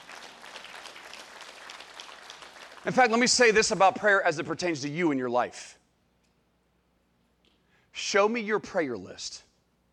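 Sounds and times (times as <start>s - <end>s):
audience clapping: 0.0s - 3.8s
speech: 2.8s - 5.8s, 8.1s - 9.5s.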